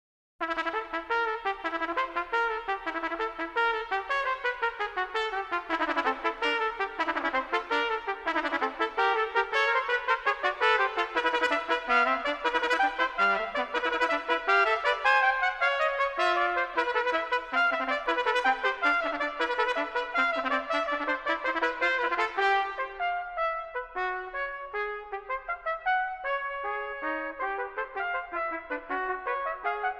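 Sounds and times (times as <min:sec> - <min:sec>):
trumpet duet fanfare: 0:00.4 - 0:29.9.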